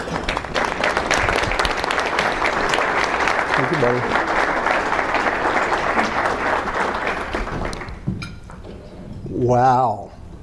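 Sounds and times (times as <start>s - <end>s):
audience applauding a comedian's entrance onstage: 0.0s - 8.1s
speech: 3.7s - 4.3s, 9.4s - 10.1s.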